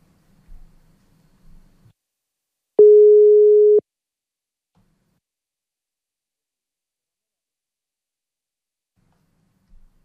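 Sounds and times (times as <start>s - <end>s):
telephone ringing tone: 2.8s - 3.8s.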